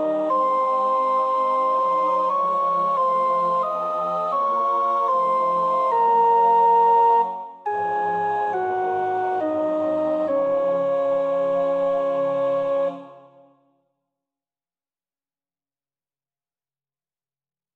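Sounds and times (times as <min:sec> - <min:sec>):
soprano practising a choir part: 0:00.0 - 0:13.6.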